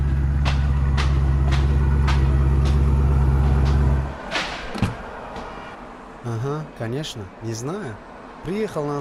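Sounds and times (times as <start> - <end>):
car engine idling: 0.0 - 5.8
speech: 6.8 - 9.0.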